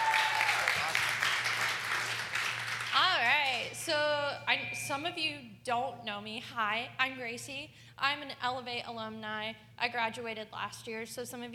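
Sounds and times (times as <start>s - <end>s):
person whooping: 0.0s - 0.9s
audience applause: 0.0s - 3.3s
speech: 3.9s - 11.5s.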